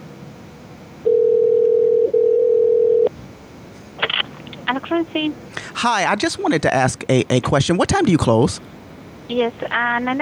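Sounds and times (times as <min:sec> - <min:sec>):
telephone dial tone while placing a call: 0:01.0 - 0:03.1
speech: 0:04.8 - 0:10.2.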